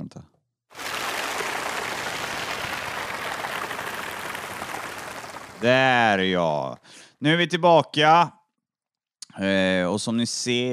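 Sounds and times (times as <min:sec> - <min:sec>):
applause sound effect: 0:00.8 - 0:06.1
speech: 0:05.6 - 0:08.4, 0:09.4 - 0:10.7.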